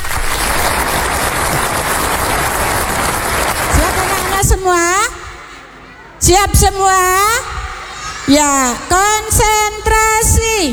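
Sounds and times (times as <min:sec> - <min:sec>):
audience applause at a kindergarten farewell performance: 0:00.0 - 0:04.8
speech: 0:06.3 - 0:07.5, 0:08.3 - 0:10.7.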